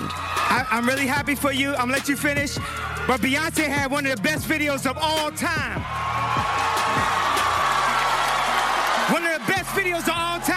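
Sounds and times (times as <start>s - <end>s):
crowd booing: 0.0s - 1.3s, 5.8s - 10.5s
speech: 0.5s - 6.0s, 9.1s - 10.5s.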